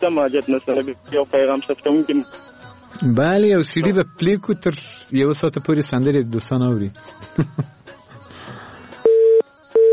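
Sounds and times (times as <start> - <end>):
speech: 0.0 - 8.6
telephone busy tone after a dropped call: 9.0 - 9.9.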